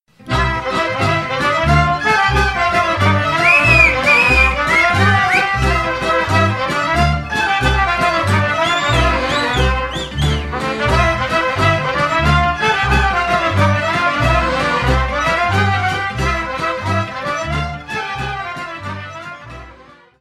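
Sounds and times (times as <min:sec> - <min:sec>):
Moldovan folk dance suite: 0:00.1 - 0:20.1.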